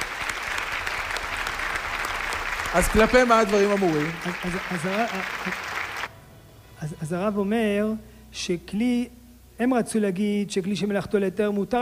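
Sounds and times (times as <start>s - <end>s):
audience applause at a religious lecture: 0.0s - 6.1s
speech: 2.7s - 5.7s, 6.8s - 11.7s.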